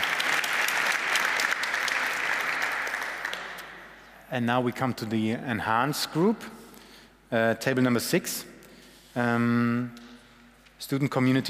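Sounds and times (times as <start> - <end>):
audience applause: 0.0 - 3.7
speech: 4.3 - 6.6, 7.3 - 8.5, 9.2 - 10.0, 10.8 - 11.4.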